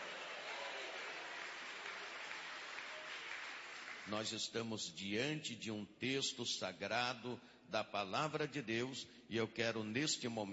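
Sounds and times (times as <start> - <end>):
audience clapping: 0.0 - 4.5
speech: 4.0 - 10.5.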